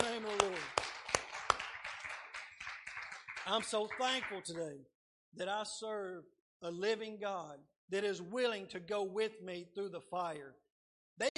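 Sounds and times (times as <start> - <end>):
audience hand clap: 0.0 - 4.7
speech: 3.5 - 10.6, 11.2 - 11.3.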